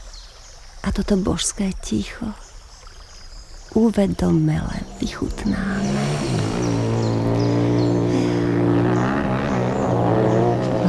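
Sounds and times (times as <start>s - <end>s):
speech: 0.9s - 2.4s, 3.7s - 6.4s
motorcycles approaching: 4.5s - 10.8s.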